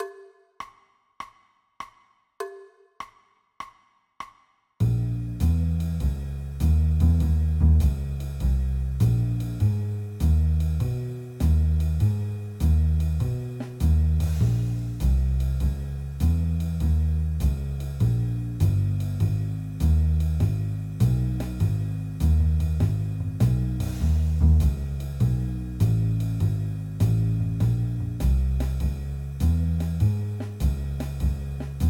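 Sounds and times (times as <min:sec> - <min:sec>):
jazz piano minor two-five-one chords: 0:04.8 - 0:31.8.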